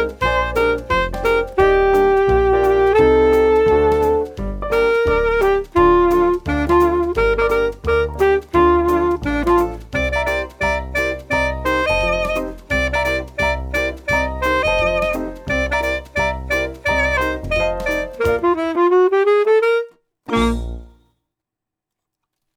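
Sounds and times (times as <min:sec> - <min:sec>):
saxophone melody: 0:00.0 - 0:21.1.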